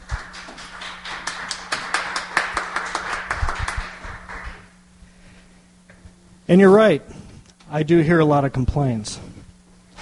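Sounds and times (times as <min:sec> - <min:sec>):
clapping and cheering: 0:00.0 - 0:04.8
speech: 0:06.5 - 0:09.2.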